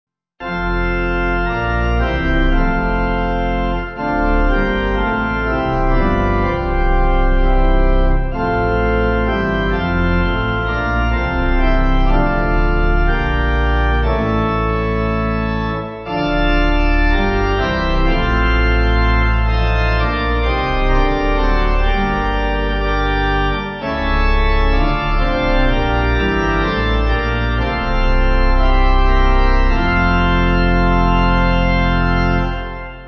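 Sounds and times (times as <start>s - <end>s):
church pipe organ backing music: 0.4s - 33.0s.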